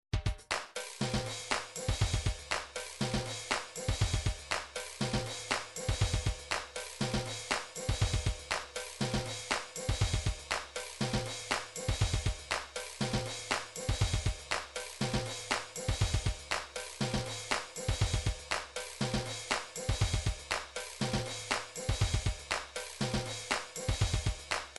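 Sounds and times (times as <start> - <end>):
drum pattern: 0.2 - 24.7.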